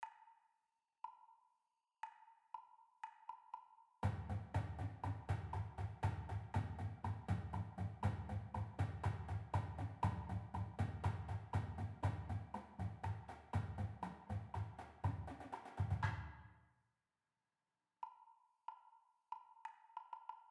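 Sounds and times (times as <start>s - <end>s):
marching battery cymbal percussion: 4.0s - 16.5s.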